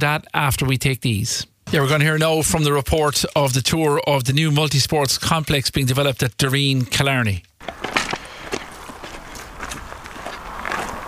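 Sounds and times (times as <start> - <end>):
speech: 0.0 - 7.9
hiss: 0.0 - 11.0
footsteps walking into a huge hall of a new multi-sports complex: 7.6 - 11.0.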